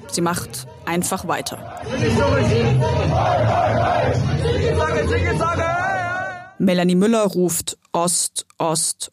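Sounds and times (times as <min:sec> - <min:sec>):
crowd chanting a battle cry: 0:00.0 - 0:06.6
speech: 0:00.1 - 0:05.8, 0:06.6 - 0:09.1.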